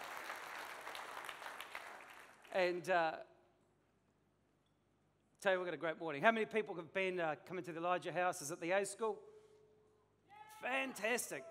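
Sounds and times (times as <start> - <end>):
audience clapping: 0.0 - 2.8
speech: 2.6 - 3.3, 5.4 - 9.3, 10.6 - 11.4.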